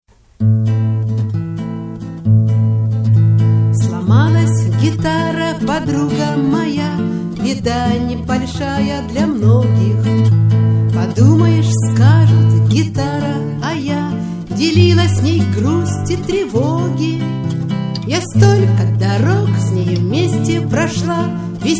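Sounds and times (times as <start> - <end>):
guitar: 0.2 - 21.7.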